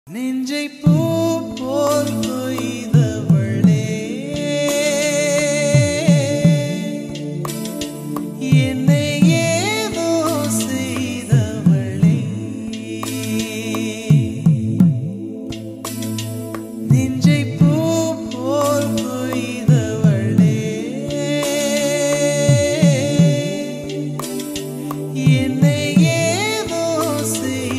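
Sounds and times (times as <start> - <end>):
dark background music ringtone: 0.9 - 27.7.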